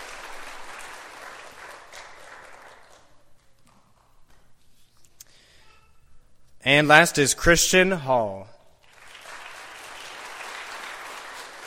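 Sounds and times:
audience applause: 0:00.0 - 0:03.3, 0:08.9 - 0:11.6
speech: 0:06.7 - 0:08.6.

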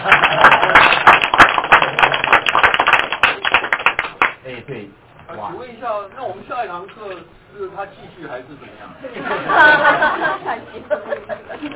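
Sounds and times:
audience applause: 0:00.0 - 0:04.3
speech: 0:06.0 - 0:11.0
laughter: 0:09.0 - 0:11.7.

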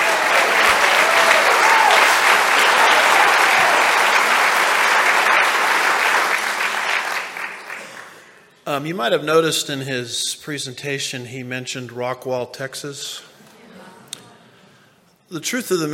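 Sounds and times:
audience applause: 0:00.0 - 0:08.4
speech: 0:08.7 - 0:13.3, 0:15.3 - 0:15.9.

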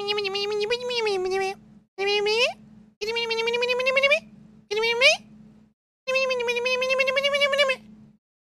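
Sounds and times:
voice imitating squeaking mice: 0:00.0 - 0:05.3, 0:06.1 - 0:07.9.

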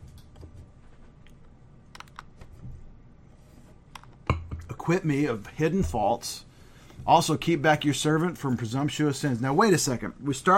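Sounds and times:
low hum: 0:00.0 - 0:10.5
computer clicks and taps: 0:01.9 - 0:02.3
speech: 0:04.8 - 0:06.5, 0:07.1 - 0:10.5.

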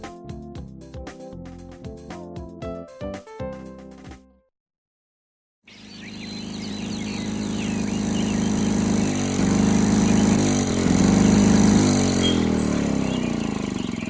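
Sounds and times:
noisy lawnmower engine running: 0:05.7 - 0:14.0.

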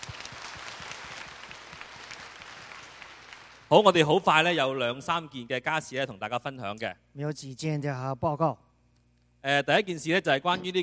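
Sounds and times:
audience applause: 0:00.0 - 0:03.7
speech: 0:03.7 - 0:08.6, 0:09.4 - 0:10.8.

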